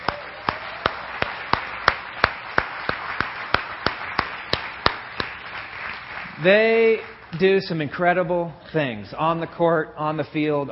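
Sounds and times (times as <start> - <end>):
audience applause: 0.0 - 7.3
speech: 6.4 - 10.7.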